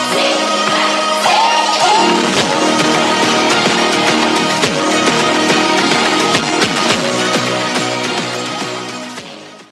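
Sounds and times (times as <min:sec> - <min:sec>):
funk background music: 0:00.2 - 0:09.6.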